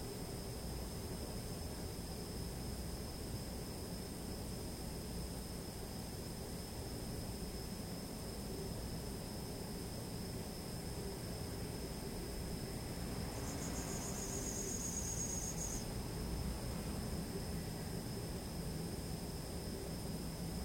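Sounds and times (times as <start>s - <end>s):
insects trilling on an autumn evening: 0.0s - 20.6s
buzzy chirp: 13.3s - 15.8s.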